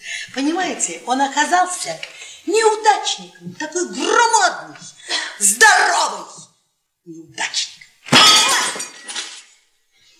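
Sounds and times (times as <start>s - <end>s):
speech: 0.4s - 6.4s, 7.1s - 7.7s
glass bottle smashed against a bar: 8.1s - 9.6s.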